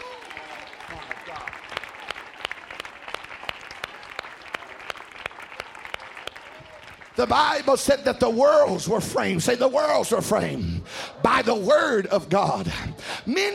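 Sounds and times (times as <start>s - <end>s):
audience clapping hands: 0.0s - 8.5s
speech: 7.2s - 13.5s.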